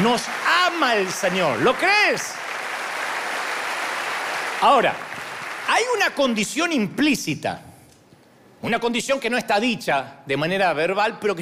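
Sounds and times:
speech: 0.0 - 2.5, 4.6 - 5.1, 5.7 - 7.7, 8.6 - 11.3
audience applauding: 0.0 - 6.2.

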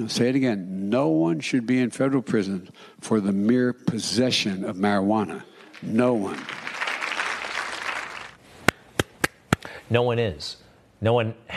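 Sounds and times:
speech: 0.0 - 6.6, 9.9 - 11.5
crowd applause: 5.6 - 8.4.

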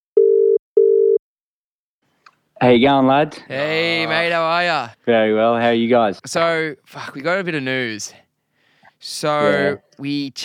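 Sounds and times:
telephone ringback tone while placing call: 0.2 - 1.2
speech: 2.6 - 8.2, 9.0 - 10.4.

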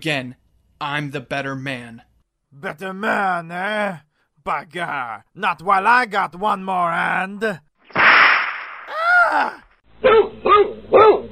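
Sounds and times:
speech: 0.0 - 8.1, 9.3 - 11.2
rawhide whip lash: 7.9 - 8.9.

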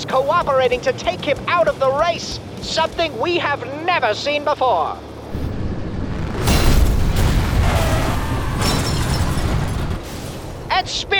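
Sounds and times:
speech: 0.1 - 5.4, 10.8 - 11.1
vehicle slamming into competing vehicles: 5.3 - 10.8.

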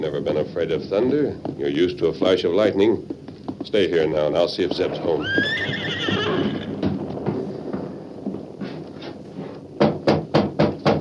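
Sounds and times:
shuffling: 0.0 - 5.6, 6.7 - 9.7
speech: 0.0 - 6.5
hoof clops: 0.2 - 10.8
nervous horse neighing: 4.9 - 6.8.

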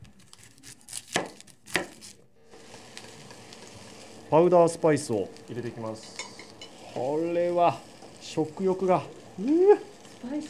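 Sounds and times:
knife chopping onions for a mackerel curry: 0.1 - 2.1
speech: 4.3 - 6.2, 7.0 - 10.4.

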